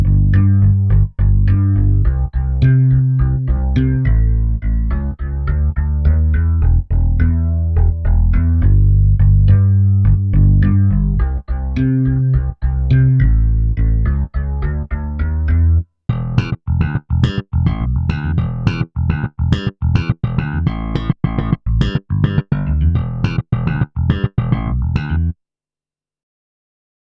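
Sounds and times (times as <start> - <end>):
Kurzweil PC361 synthesizer acoustic bass: 0.0 - 25.4.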